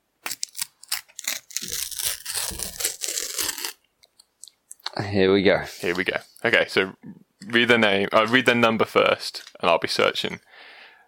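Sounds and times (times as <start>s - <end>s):
foil sticker packet being torn open: 0.2s - 3.8s
speech: 5.0s - 10.5s.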